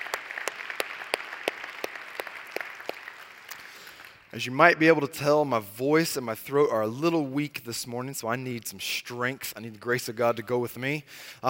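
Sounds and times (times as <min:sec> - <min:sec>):
sharp rhythmic clap: 0:00.0 - 0:04.3
church congregation clapping: 0:00.0 - 0:04.8
speech: 0:04.4 - 0:11.4.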